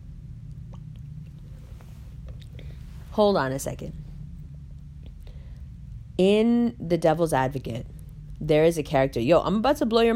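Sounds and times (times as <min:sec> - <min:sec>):
steady low hum: 0:00.0 - 0:10.1
faint wet mouth clicks: 0:00.4 - 0:01.5
drinking a sip of water: 0:00.5 - 0:02.7
speech: 0:03.2 - 0:04.0, 0:06.2 - 0:10.1.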